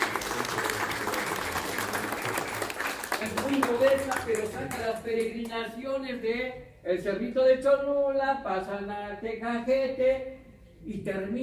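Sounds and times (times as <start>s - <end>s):
applause: 0.0s - 5.6s
speech: 3.3s - 11.4s.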